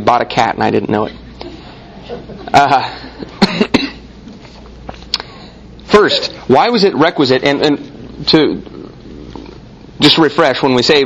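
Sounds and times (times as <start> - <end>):
speech: 0.0 - 1.2, 2.1 - 3.6, 6.0 - 8.8, 10.0 - 11.0
laughter: 1.9 - 3.4
wheezing cough: 3.0 - 4.1.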